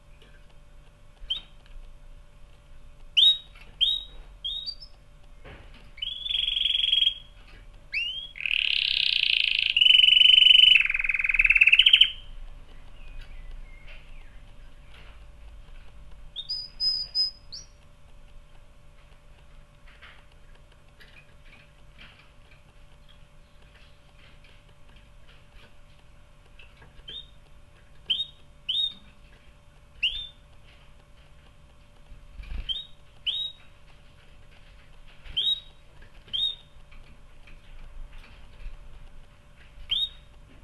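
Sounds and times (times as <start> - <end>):
faint clicking: 0.0 - 40.6
canary chirping: 1.2 - 1.6, 3.1 - 5.0, 6.0 - 15.1, 16.3 - 17.9, 26.6 - 30.7, 32.4 - 37.0, 39.8 - 40.3.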